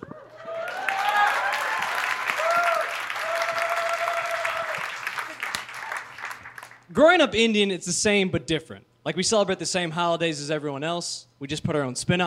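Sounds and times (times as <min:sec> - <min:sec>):
audience applause: 0:00.2 - 0:06.8
speech: 0:07.0 - 0:12.2.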